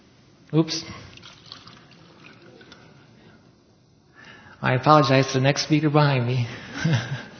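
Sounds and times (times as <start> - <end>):
speech: 0.5 - 1.0, 4.6 - 7.3
water pouring from a clear pitcher into a clear glass: 0.9 - 3.2
laughter: 6.6 - 7.3.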